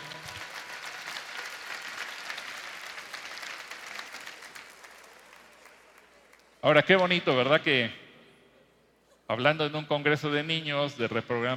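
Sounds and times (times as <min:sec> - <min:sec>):
audience applause: 0:00.0 - 0:06.6
speech: 0:06.6 - 0:08.0, 0:09.3 - 0:11.5.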